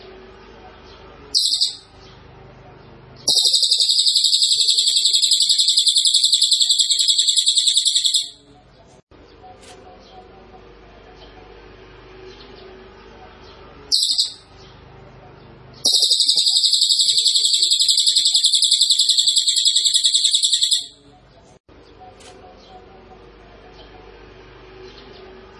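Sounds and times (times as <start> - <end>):
small minivet song: 1.2 - 2.2, 3.1 - 8.9, 13.8 - 14.7, 15.9 - 25.5.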